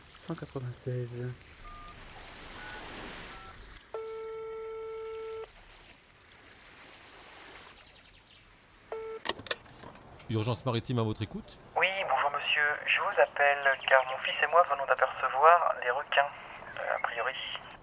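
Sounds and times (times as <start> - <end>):
speech: 0.3 - 1.6, 10.3 - 11.8, 12.6 - 17.6
long steady telephone tone: 1.6 - 5.5, 8.9 - 9.3, 11.7 - 17.8
telephone dialing tones calling the maritime emergency line: 2.6 - 5.5, 8.9 - 9.6, 11.8 - 17.8.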